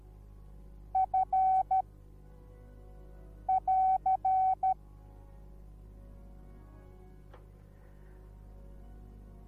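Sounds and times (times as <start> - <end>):
morse code beeps: 1.0 - 1.8, 3.5 - 4.8.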